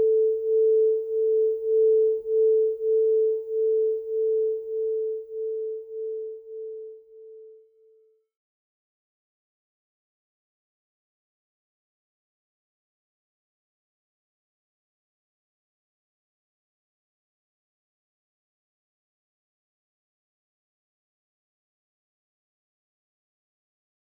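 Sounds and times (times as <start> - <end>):
singing bowls: 0.0 - 7.6.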